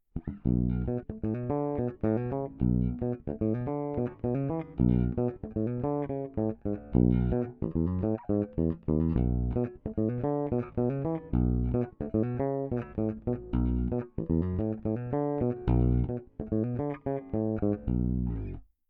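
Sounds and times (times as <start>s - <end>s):
electric guitar on passive parallel bridge pickup: 0.2s - 18.6s.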